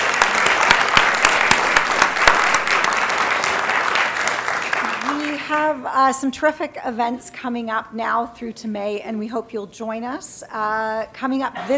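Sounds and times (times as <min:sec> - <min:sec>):
audience applause: 0:00.0 - 0:05.7
speech: 0:05.8 - 0:11.7.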